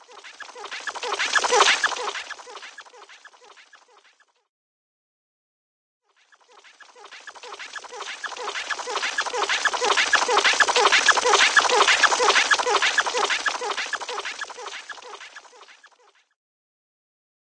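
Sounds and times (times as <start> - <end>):
funny cartoon helicopter, steady: 0.0 - 4.5, 6.2 - 16.4.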